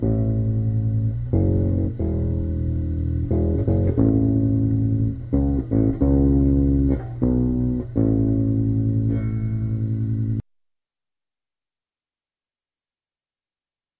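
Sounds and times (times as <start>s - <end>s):
bass sound: 0.0s - 10.4s.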